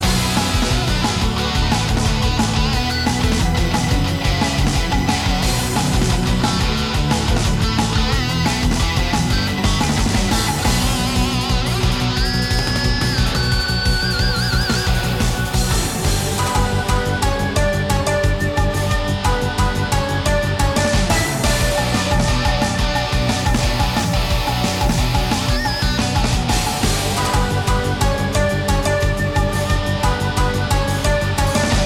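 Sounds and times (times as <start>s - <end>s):
battle background music: 0.0s - 31.8s.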